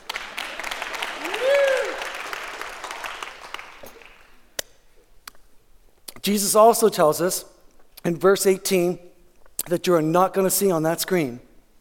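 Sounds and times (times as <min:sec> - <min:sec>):
audience clapping: 0:00.0 - 0:04.4
whoop: 0:01.2 - 0:02.4
speech: 0:06.3 - 0:09.1, 0:09.7 - 0:11.5.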